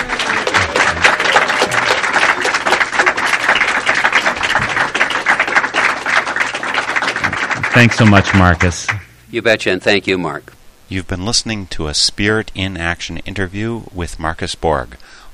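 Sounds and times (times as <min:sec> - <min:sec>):
audience applause: 0:00.0 - 0:09.0
speech: 0:07.8 - 0:15.3.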